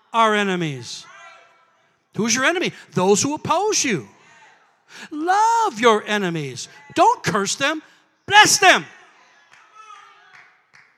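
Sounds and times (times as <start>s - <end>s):
speech: 0.1s - 1.1s, 2.1s - 4.2s, 4.9s - 9.0s
hand claps: 10.3s - 10.9s.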